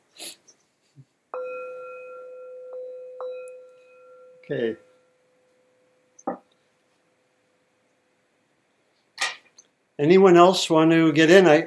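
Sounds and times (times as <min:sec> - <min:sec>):
bell ringing: 0:01.4 - 0:06.0
speech: 0:04.5 - 0:04.9, 0:10.0 - 0:11.6.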